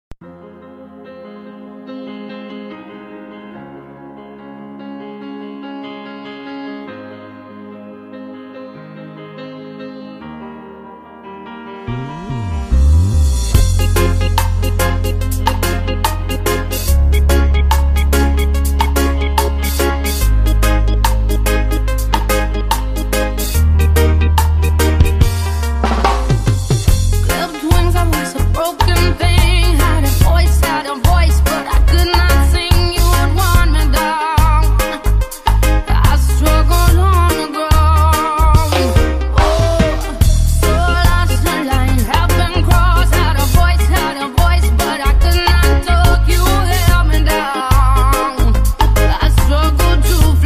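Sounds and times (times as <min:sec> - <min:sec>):
reggae remix music: 0:11.6 - 0:50.4.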